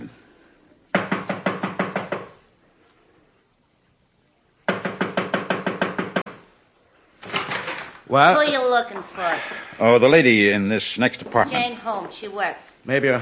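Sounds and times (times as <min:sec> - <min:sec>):
knocking on an apartment door: 0:00.9 - 0:02.4, 0:04.7 - 0:06.4
speech: 0:08.1 - 0:13.2.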